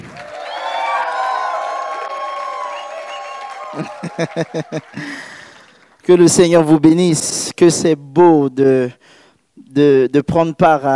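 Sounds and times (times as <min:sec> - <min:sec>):
audience shouting for joy: 0:00.0 - 0:05.6
laughter: 0:03.6 - 0:05.7
speech: 0:03.7 - 0:05.4, 0:06.1 - 0:10.9.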